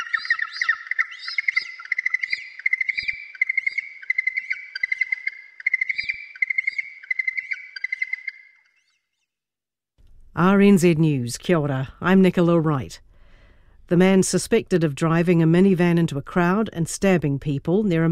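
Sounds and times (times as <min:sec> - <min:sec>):
yellow-eyed penguin giving a shrill trilling call: 0:00.0 - 0:08.9
speech: 0:10.4 - 0:13.0, 0:13.9 - 0:18.1.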